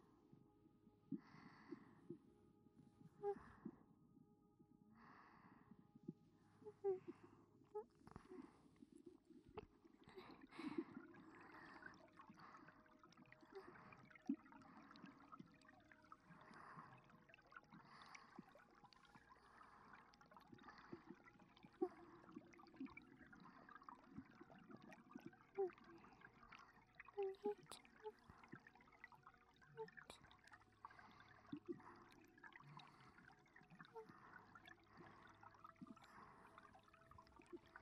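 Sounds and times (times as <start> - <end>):
water: 0.0 - 37.7
breathing: 1.1 - 2.2, 5.0 - 5.9, 10.0 - 15.5, 16.3 - 21.3, 23.3 - 24.4, 30.8 - 37.7.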